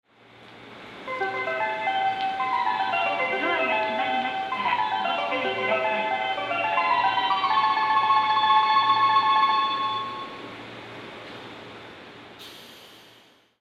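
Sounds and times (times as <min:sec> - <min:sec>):
melody: 0:01.1 - 0:10.4.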